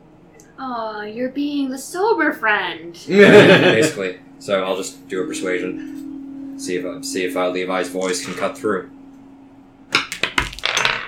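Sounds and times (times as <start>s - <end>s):
speech: 0.6s - 6.0s, 6.6s - 9.0s
laughter: 3.1s - 4.2s
dice rolling and clattering across a hard surface: 10.0s - 11.0s.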